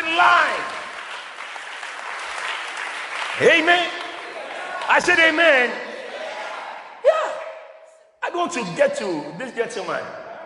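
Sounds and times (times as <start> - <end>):
audience clapping hands: 0.0 - 5.5
speech: 3.4 - 4.0, 4.9 - 5.8, 8.3 - 10.2.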